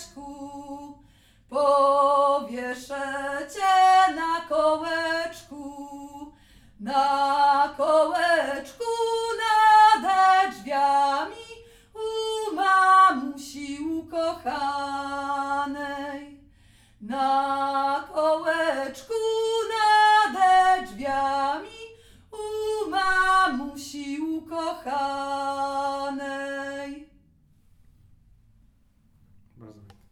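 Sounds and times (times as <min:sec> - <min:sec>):
wedding folk song: 0:00.0 - 0:27.1.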